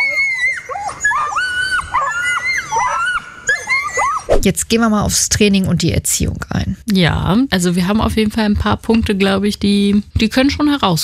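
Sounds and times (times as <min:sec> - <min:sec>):
Nova Scotia duck tolling retriever screaming whines: 0:00.0 - 0:04.4
speech: 0:04.4 - 0:11.0.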